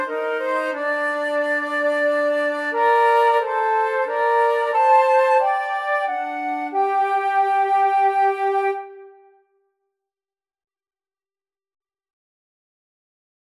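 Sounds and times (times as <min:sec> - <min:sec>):
flute trio: 0:00.0 - 0:09.3.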